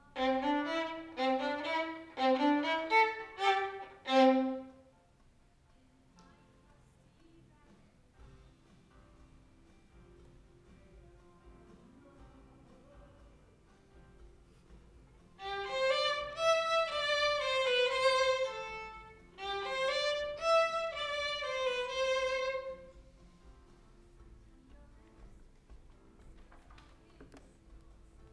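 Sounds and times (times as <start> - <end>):
violin: 0.0 - 5.0, 15.4 - 25.6.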